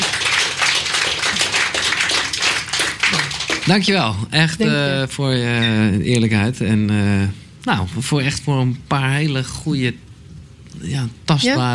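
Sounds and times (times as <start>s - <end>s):
audience applause: 0.0s - 4.0s
speech: 3.7s - 10.1s, 10.8s - 11.7s.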